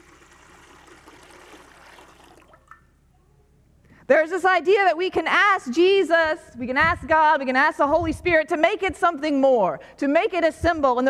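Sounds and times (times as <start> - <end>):
clean spring water poured from a bottle into a baptismal font: 0.0 - 3.0
small water splash: 0.0 - 3.0
speech: 4.1 - 11.0.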